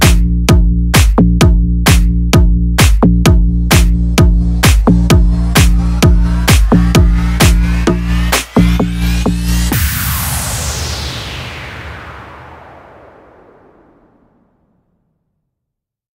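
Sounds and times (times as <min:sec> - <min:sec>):
instrumental music: 0:00.0 - 0:09.8.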